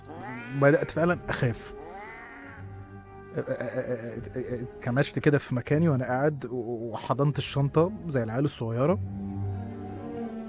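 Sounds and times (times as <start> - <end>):
cat meowing: 0.1 - 1.0, 1.7 - 2.7
speech: 0.6 - 1.8, 3.4 - 9.4.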